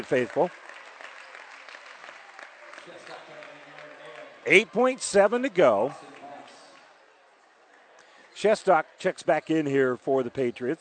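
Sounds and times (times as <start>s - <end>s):
speech: 0.0s - 0.6s, 4.4s - 6.1s, 8.4s - 10.7s
basketball crowd applause: 0.0s - 7.0s.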